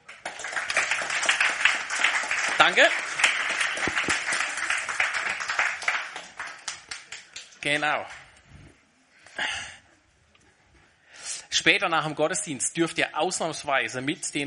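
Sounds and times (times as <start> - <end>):
audience applauding: 0.0 - 8.2
speech: 2.6 - 3.0, 7.6 - 8.2, 11.6 - 14.4.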